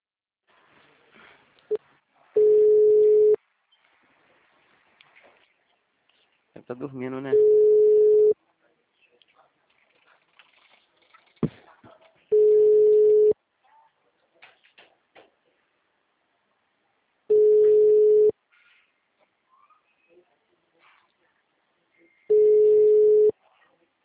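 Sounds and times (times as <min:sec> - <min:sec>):
telephone ringing tone during a phone call: 0:02.4 - 0:03.4, 0:07.3 - 0:08.4, 0:12.3 - 0:13.4, 0:17.3 - 0:18.3, 0:22.3 - 0:23.3
speech: 0:06.7 - 0:07.8.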